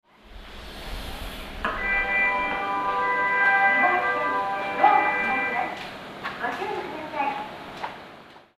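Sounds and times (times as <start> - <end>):
melody: 1.7 - 5.8.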